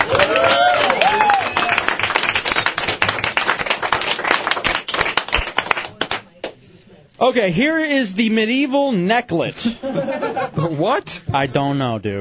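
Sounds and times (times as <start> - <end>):
person cheering: 0.0 - 1.9
audience applause: 0.0 - 6.2
speech: 7.3 - 12.1
laughter: 9.6 - 11.6.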